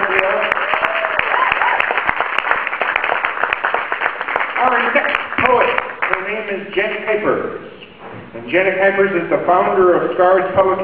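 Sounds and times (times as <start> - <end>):
audience applause: 0.0 - 6.3
speech: 8.5 - 10.8.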